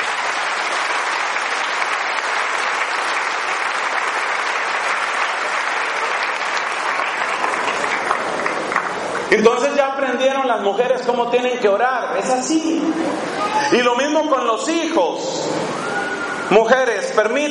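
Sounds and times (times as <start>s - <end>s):
audience applause: 0.0s - 9.3s
speech: 9.3s - 15.8s, 16.5s - 17.5s.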